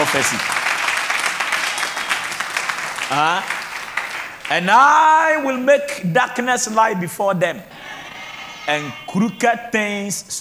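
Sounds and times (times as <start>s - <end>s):
audience clapping: 0.0s - 5.0s
speech: 0.1s - 0.6s, 3.1s - 3.6s, 4.5s - 7.7s, 8.7s - 10.3s.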